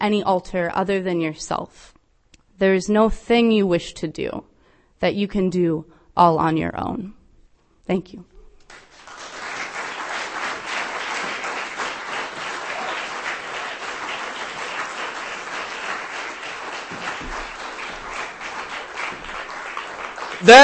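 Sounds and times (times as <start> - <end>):
speech: 0.0 - 2.0, 2.6 - 7.2, 7.9 - 8.8, 20.4 - 20.6
audience applause at a live reading event: 8.7 - 20.6.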